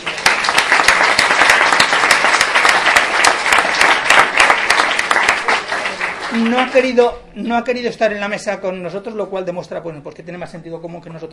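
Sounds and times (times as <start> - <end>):
audience applause: 0.0 - 7.0
speech: 6.4 - 11.3.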